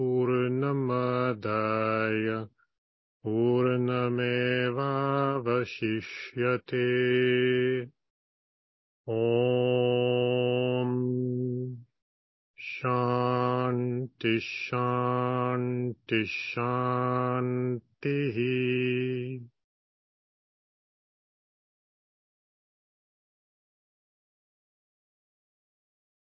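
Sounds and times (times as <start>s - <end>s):
chanting: 0.0s - 2.5s, 3.2s - 7.9s, 9.1s - 11.8s, 12.6s - 19.5s.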